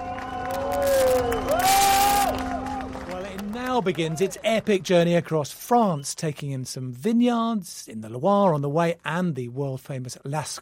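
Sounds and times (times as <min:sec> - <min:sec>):
sports fans clapping and cheering welcoming the Olympic torch: 0:00.0 - 0:05.8
speech: 0:03.8 - 0:10.6.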